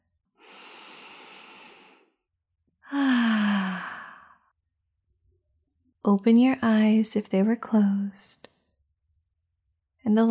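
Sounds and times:
deep full breath during a guided relaxation: 0.4s - 2.2s, 2.9s - 4.5s
speech: 6.0s - 8.5s, 10.1s - 10.2s.

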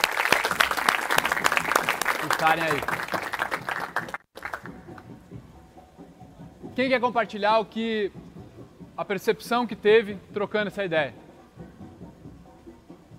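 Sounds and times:
audience applause: 0.0s - 4.7s
speech: 2.4s - 3.1s, 6.8s - 8.2s, 9.0s - 11.2s.

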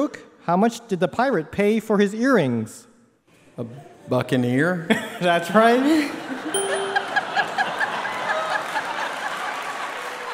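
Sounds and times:
speech: 0.0s - 2.9s, 3.6s - 6.6s
laughter: 4.8s - 10.3s
applause: 6.9s - 10.3s.

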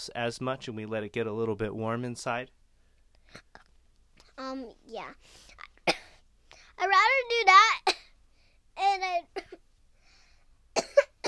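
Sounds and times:
speech: 0.0s - 2.6s, 4.4s - 5.5s, 6.8s - 8.0s, 8.8s - 9.6s
person coughing: 5.9s - 6.2s, 10.8s - 11.2s.

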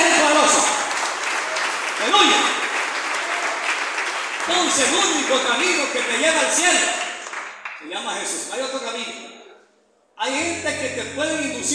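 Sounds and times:
audience applauding: 0.0s - 8.0s
speech: 4.7s - 7.1s, 7.8s - 9.4s, 10.2s - 11.7s.

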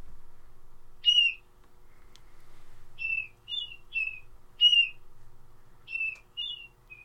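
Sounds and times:
faint low hum: 0.0s - 7.0s
bird giving gull-like keer calls: 1.0s - 1.5s, 3.0s - 5.0s, 5.9s - 7.0s.

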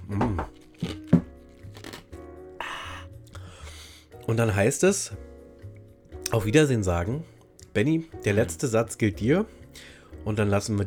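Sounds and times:
chewing ice cubes: 0.5s - 2.3s
speech: 4.3s - 5.2s, 6.3s - 10.8s.

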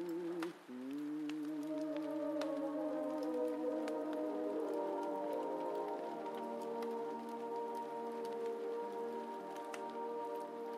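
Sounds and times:
fire crackling: 0.0s - 10.7s
heavy rain: 0.0s - 10.7s
oldies song playing muffled from another room: 0.0s - 10.7s.

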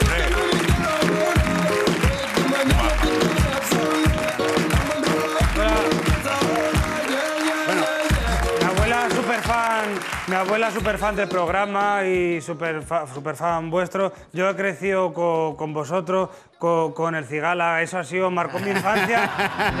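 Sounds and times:
studio audience applause: 0.0s - 11.5s
speech: 10.3s - 19.7s
laughter: 18.4s - 19.7s.

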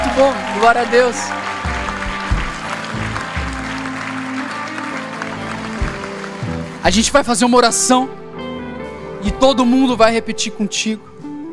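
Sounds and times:
audience applauding: 0.0s - 7.1s
speech: 0.2s - 1.4s, 6.8s - 8.2s, 9.2s - 11.1s.

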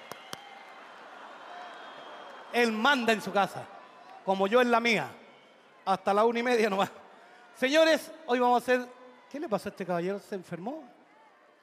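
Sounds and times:
man clapping hands: 0.0s - 0.5s
speech: 2.5s - 5.2s, 5.8s - 7.0s, 7.6s - 11.0s.

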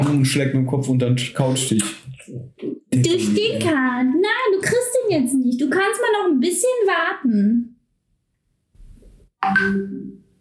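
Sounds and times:
speech: 0.1s - 7.7s, 9.4s - 10.2s
messaging app ringtone on a phone: 9.4s - 10.2s.

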